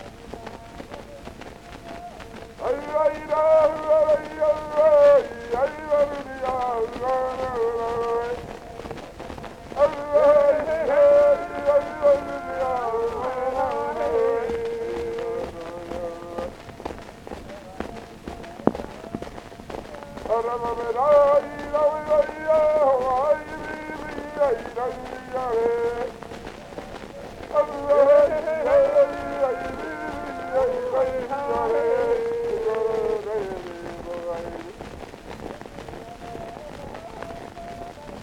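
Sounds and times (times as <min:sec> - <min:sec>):
chorus singing on an Edison Blue Amberol cylinder: 0:00.0 - 0:34.8.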